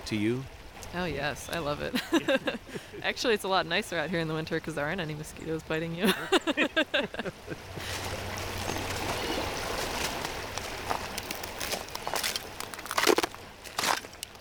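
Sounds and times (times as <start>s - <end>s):
speech: 0.1s - 8.2s
footsteps crunching on ice: 7.9s - 14.3s.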